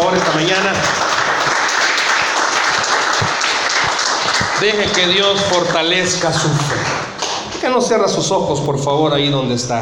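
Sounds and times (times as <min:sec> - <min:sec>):
audience applauding: 0:00.0 - 0:07.6
speech: 0:00.1 - 0:01.0, 0:04.6 - 0:07.0, 0:07.6 - 0:09.8.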